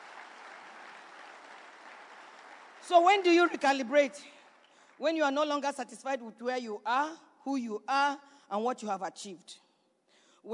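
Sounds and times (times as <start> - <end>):
crowd applauding: 0.0 - 5.0
speech: 2.9 - 4.4, 5.0 - 9.6.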